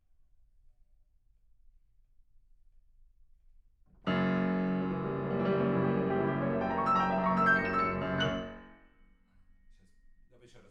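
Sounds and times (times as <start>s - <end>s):
piano: 3.9s - 9.9s.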